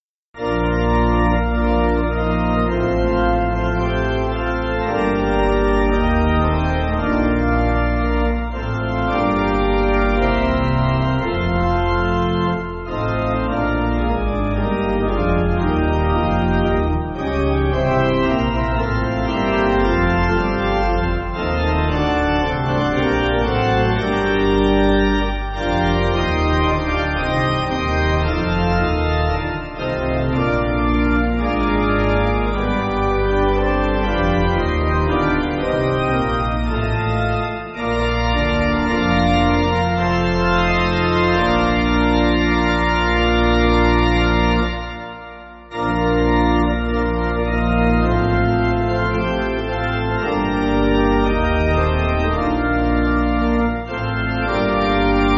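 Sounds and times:
pipe organ playing: 0.4 - 55.3.

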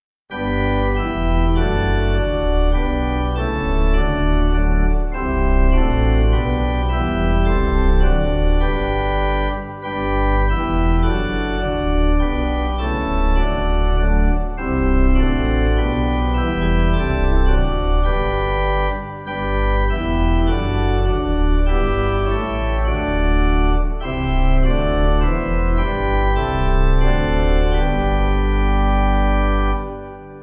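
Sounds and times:
pipe organ: 0.3 - 30.4.

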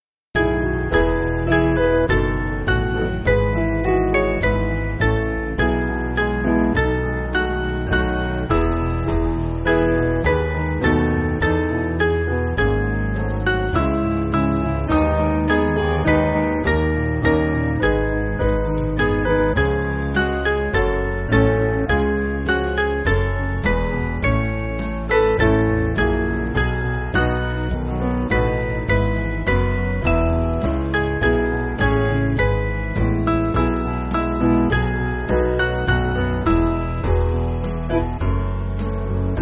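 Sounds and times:
piano backing music for churches: 0.4 - 39.3.

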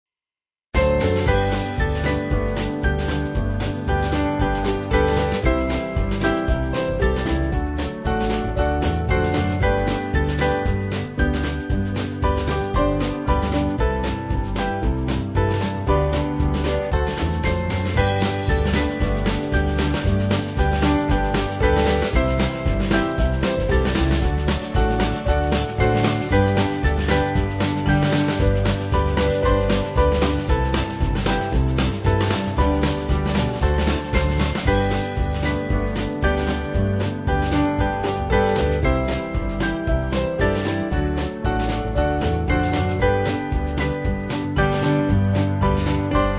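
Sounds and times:
African band backing music: 0.8 - 46.3.

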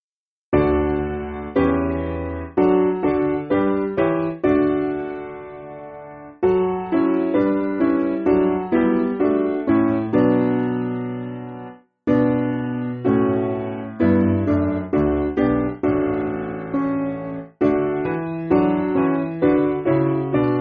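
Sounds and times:
piano backing music for churches: 0.6 - 20.6.

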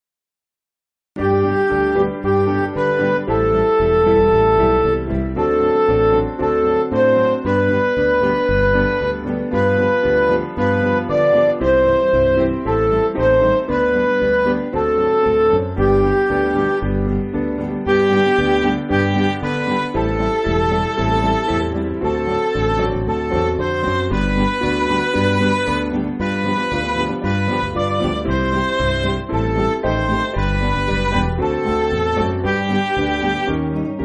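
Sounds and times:
MIDI backing music: 1.2 - 34.0.

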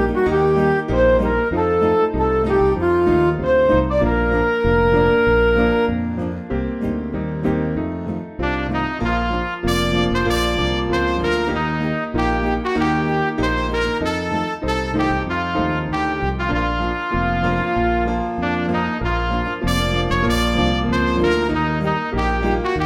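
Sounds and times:
MIDI music: 0.0 - 22.8.

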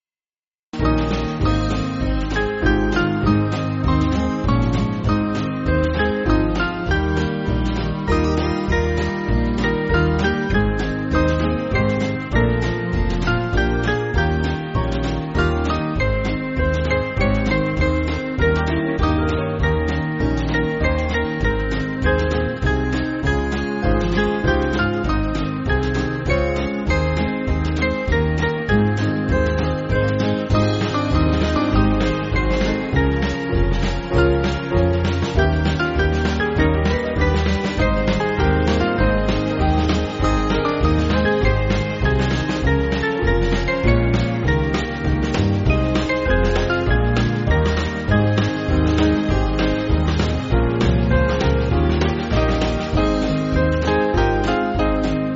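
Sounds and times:
band backing track for churches: 0.8 - 55.3.

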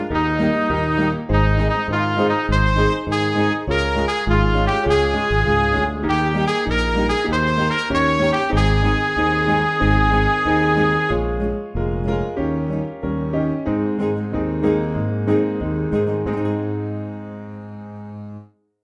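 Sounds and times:
MIDI music: 0.0 - 18.6.

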